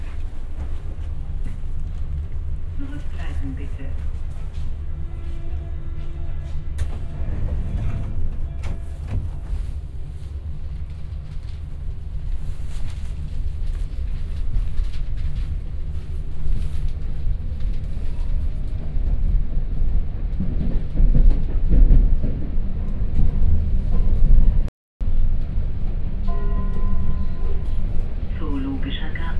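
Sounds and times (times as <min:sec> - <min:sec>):
underground train in Berlin: 0:00.0 - 0:29.3.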